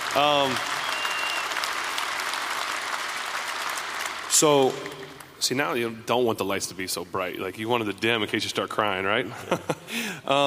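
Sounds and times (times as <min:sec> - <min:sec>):
audience applause: 0:00.0 - 0:05.3
speech: 0:00.2 - 0:00.8, 0:04.4 - 0:10.4.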